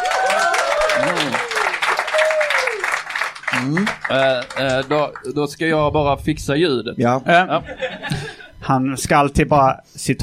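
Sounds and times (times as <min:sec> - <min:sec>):
audience applause: 0:00.0 - 0:05.4
speech: 0:03.7 - 0:08.1, 0:08.7 - 0:10.2.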